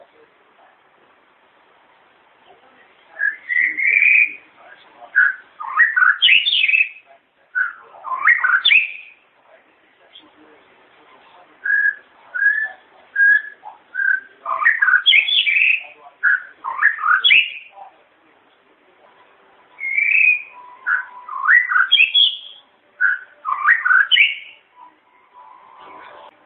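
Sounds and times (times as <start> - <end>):
White-rumped shama singing whistles and warbles: 3.1 - 9.2, 11.6 - 17.8, 19.8 - 25.5.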